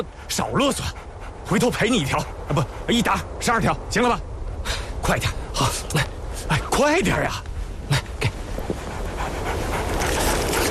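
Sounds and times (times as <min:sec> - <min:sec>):
speech: 0:00.0 - 0:07.5
injured three-legged wolf panting: 0:00.7 - 0:02.8, 0:08.4 - 0:10.6.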